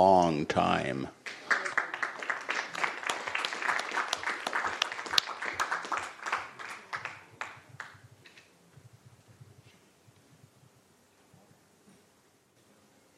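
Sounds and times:
speech: 0.0s - 1.3s
applause: 1.2s - 8.0s.

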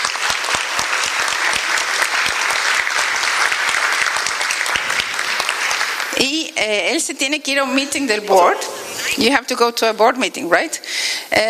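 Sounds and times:
audience applause: 0.0s - 6.2s
speech: 6.6s - 11.4s.

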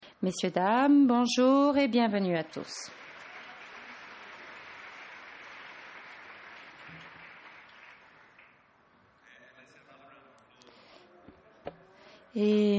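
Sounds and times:
speech: 0.2s - 3.0s, 12.4s - 12.7s
audience applause: 2.5s - 8.7s.

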